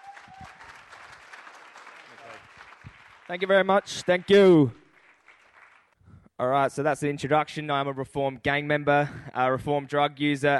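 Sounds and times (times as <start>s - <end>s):
whistle: 0.0s - 0.8s
cheers: 0.0s - 5.6s
round of applause: 0.0s - 6.0s
speech: 3.3s - 4.8s, 6.4s - 10.5s.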